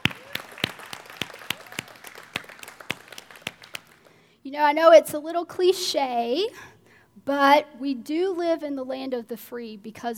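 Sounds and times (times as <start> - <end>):
audience applause: 0.0 - 4.1
speech: 4.5 - 10.1.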